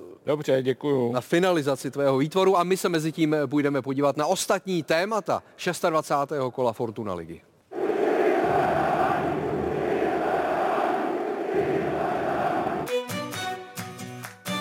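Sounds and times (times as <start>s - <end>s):
speech: 0.2s - 7.5s
football fans chanting in stadium: 7.7s - 12.9s.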